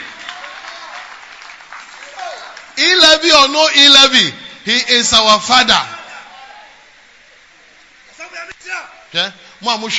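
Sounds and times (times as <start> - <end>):
audience clapping hands: 0.0 - 2.8
speech: 2.8 - 5.9, 9.1 - 9.9.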